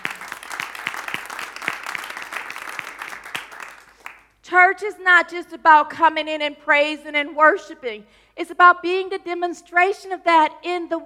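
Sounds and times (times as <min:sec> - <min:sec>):
audience clapping: 0:00.0 - 0:04.4
speech: 0:04.5 - 0:11.0.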